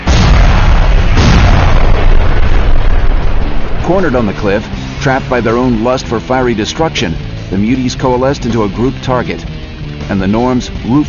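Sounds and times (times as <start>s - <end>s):
heavy low rumble: 0.0s - 11.0s
pipe bombs exploding: 0.0s - 11.0s
speech: 3.9s - 9.5s, 10.1s - 11.0s.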